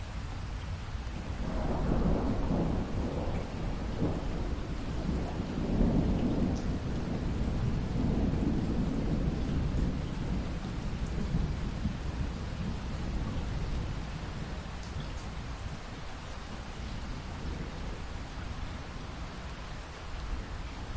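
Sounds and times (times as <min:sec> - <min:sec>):
light rain dripping after a thunderstorm: 0:00.0 - 0:20.9
distant thunder rumbles: 0:01.4 - 0:15.8.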